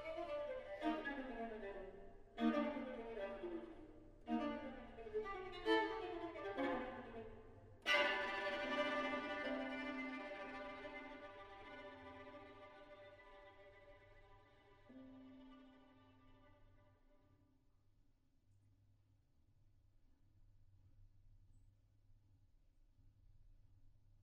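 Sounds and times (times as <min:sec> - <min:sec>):
string quartet: 0:00.0 - 0:16.7.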